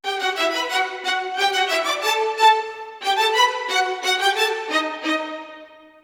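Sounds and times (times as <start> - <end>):
orchestral string theme on violins in E minor: 0.0 - 6.0.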